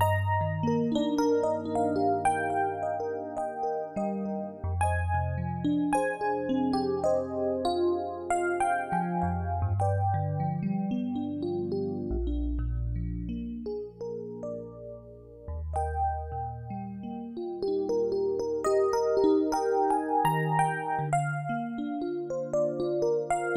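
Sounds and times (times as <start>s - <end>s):
electric piano: 0.0s - 23.5s.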